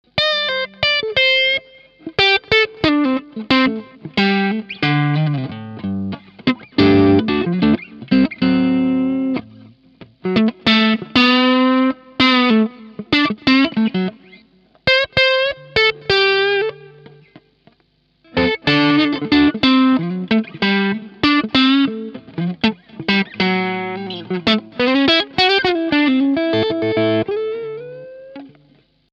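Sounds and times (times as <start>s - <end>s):
Harley Benton TE 70 electric guitar, crunchy tone: 0.0s - 29.1s.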